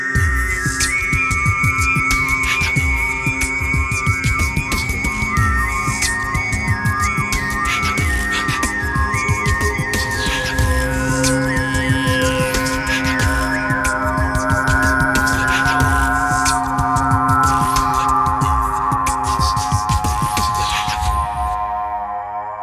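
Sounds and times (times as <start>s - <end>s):
groovy music: 0.2s - 22.5s.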